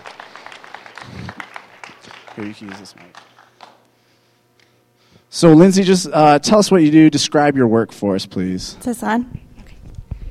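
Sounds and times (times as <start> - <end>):
audience clapping: 0.0 - 3.9
speech: 2.4 - 3.3, 5.3 - 9.4.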